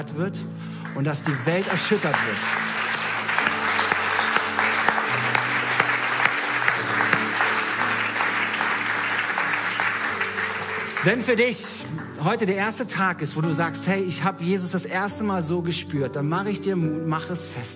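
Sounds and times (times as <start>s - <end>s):
speech: 0.0s - 2.7s, 11.0s - 17.7s
audience applause: 0.9s - 12.2s.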